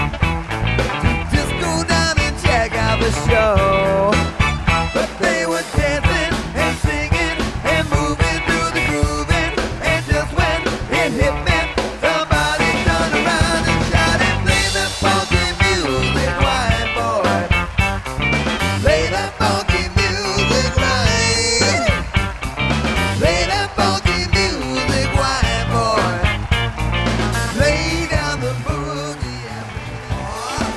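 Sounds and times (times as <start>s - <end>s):
funky dance band music: 0.0s - 30.7s.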